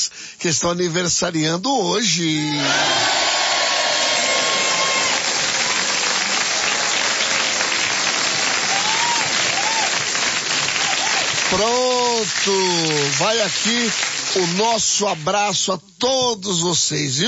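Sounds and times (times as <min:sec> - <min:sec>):
speech: 0:00.4 - 0:03.2, 0:12.4 - 0:17.2
crowd applause: 0:02.4 - 0:15.0.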